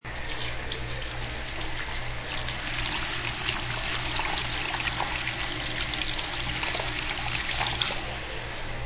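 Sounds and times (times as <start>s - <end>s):
hands washing under a faucet: 0.1s - 8.7s.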